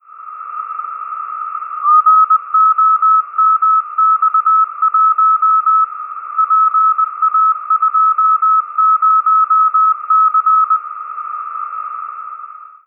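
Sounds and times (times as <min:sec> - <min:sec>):
CW Morse code beeps: 0:01.8 - 0:11.9.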